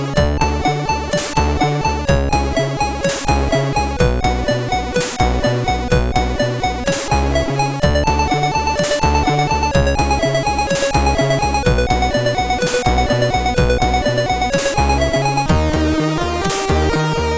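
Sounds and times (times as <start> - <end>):
MOS6581R3 SID chip tune: 0.2 - 17.3.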